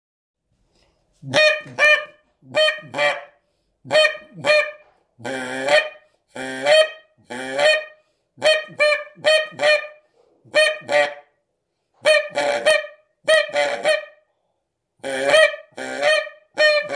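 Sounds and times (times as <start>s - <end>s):
Canada goose honking: 1.3s - 3.3s, 3.9s - 11.3s, 12.0s - 14.2s, 15.0s - 16.9s.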